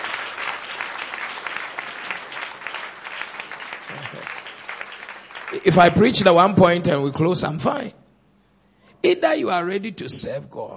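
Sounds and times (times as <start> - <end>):
audience clapping: 0.0 - 6.6
speech: 5.5 - 8.0, 9.0 - 10.7.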